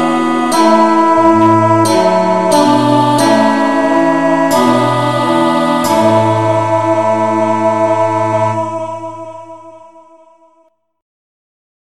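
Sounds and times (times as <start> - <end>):
instrumental music in the key of A: 0.0 - 9.8.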